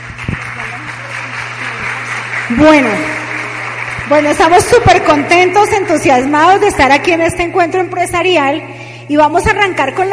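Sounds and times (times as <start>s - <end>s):
audience applause: 0.0s - 6.2s
low electrical hum: 0.0s - 10.1s
speech: 2.5s - 3.2s, 4.1s - 10.1s.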